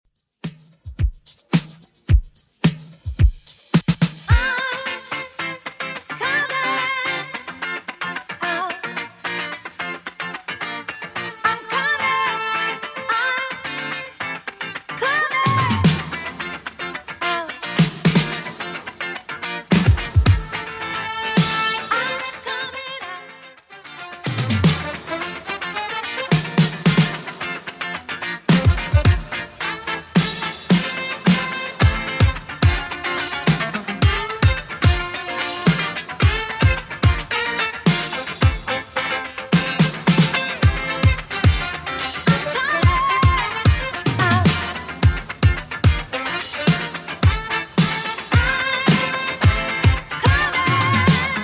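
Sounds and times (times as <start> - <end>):
80s style music at 109 BPM: 0.2 - 51.4.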